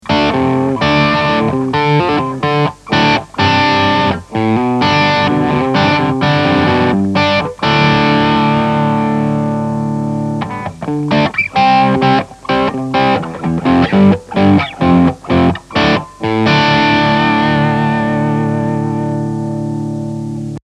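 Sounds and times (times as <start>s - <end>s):
Blackstar amplifier gain distortion: 0.0s - 20.6s.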